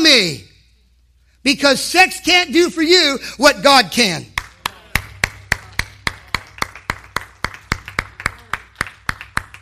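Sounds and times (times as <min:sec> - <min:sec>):
speech: 0:00.2 - 0:00.4, 0:01.4 - 0:04.3
audience clapping in a steady rhythm: 0:04.2 - 0:09.5.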